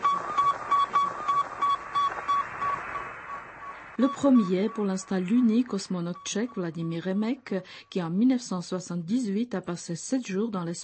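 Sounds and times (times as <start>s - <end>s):
Sputnik satellite radio beeps: 0.0s - 7.0s
crackly static hiss: 0.0s - 10.8s
speech: 4.0s - 10.8s.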